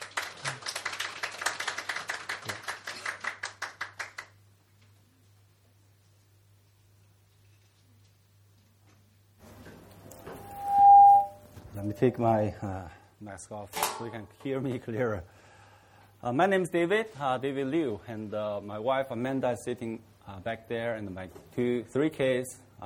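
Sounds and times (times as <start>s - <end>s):
church service audience clapping to welcome a pastor: 0.0s - 4.4s
short loud high tone: 10.3s - 11.4s
speech: 12.0s - 15.4s, 16.2s - 22.8s.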